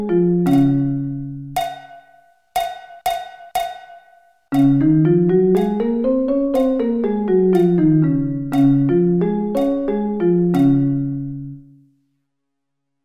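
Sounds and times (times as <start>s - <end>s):
D-flat scale: 0.0s - 1.7s, 4.5s - 11.8s.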